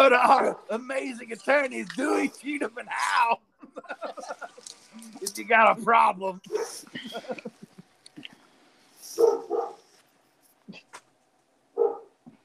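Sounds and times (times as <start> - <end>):
speech: 0.0 - 7.6, 9.2 - 9.8
laughter: 0.0 - 8.0
dog barking: 6.5 - 6.8, 9.2 - 9.8, 11.8 - 12.1.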